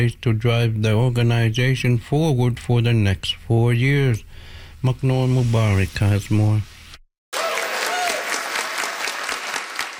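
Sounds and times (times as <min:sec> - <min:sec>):
speech: 0:00.0 - 0:06.7
crowd applauding as declaration is approved: 0:07.3 - 0:09.9
faint whistle or cheer: 0:07.4 - 0:08.5.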